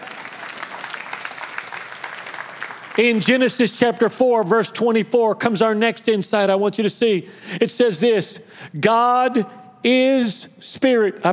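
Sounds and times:
audience clapping: 0.0 - 4.2
speech: 3.0 - 11.3.

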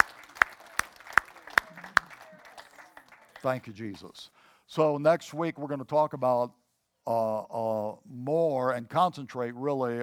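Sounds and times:
murmur of voices: 0.0 - 3.5
audience clapping in unison: 0.0 - 4.2
speech: 3.4 - 10.0.

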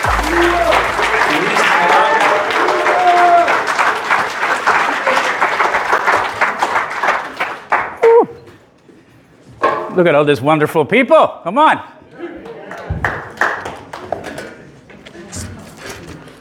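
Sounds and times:
church congregation applauding: 0.0 - 8.2, 12.7 - 14.5
speech: 10.0 - 12.0.

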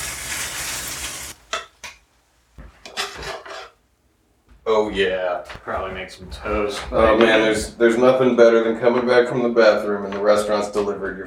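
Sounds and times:
eggs frying in a pan with mushrooms, onions and cheese: 0.0 - 2.0
scraping and rasping: 2.8 - 3.8
speech: 4.7 - 11.2.

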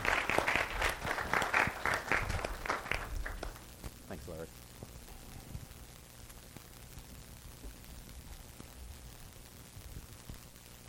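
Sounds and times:
congregation at Lawson Road applauding to welcome a new member: 0.0 - 3.7.

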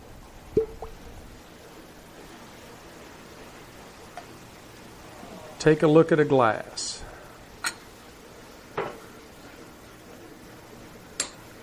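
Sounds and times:
cork popping: 0.5 - 1.1
whiskey pouring: 0.5 - 1.3
speech: 5.6 - 7.0.

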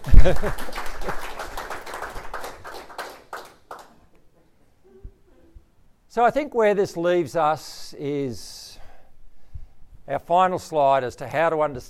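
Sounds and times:
audience applause: 0.0 - 4.0
speech: 0.2 - 0.8, 6.2 - 8.5, 10.1 - 11.8.

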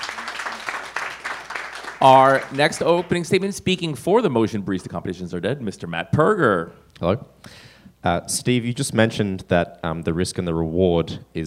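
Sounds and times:
round of applause: 0.0 - 3.5
speech: 2.0 - 11.4.

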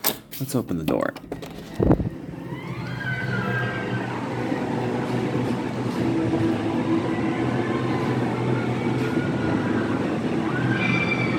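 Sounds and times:
speech: 0.4 - 2.0
mousetrap-style roller coaster rumbling along its track: 1.5 - 11.3
thin high roller coaster wheel squeals: 2.4 - 11.3.

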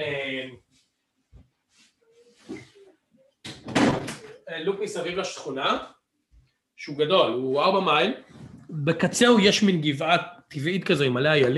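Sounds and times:
door closing thud: 3.5 - 4.4
speech: 4.5 - 6.0, 6.8 - 11.5.

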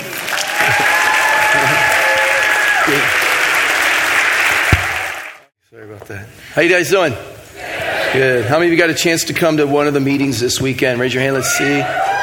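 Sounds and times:
audience applause welcoming a speaker to the stage: 0.0 - 5.5
speech: 6.1 - 7.3, 8.1 - 12.2.

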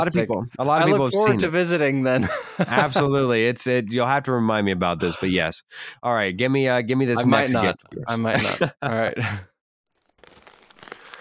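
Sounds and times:
laughter: 0.0 - 3.2, 5.0 - 5.4, 7.2 - 9.4
speech: 0.0 - 9.5
wrapping paper being torn and crinkled: 9.9 - 11.1.

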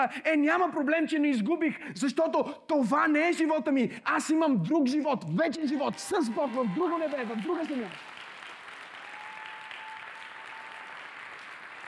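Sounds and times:
speech: 0.0 - 8.1
audience applause: 5.9 - 11.8.

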